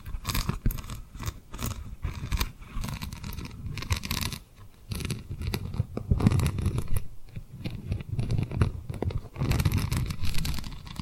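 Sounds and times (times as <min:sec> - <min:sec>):
tapping and rubbing on rhinestones: 0:00.0 - 0:11.0.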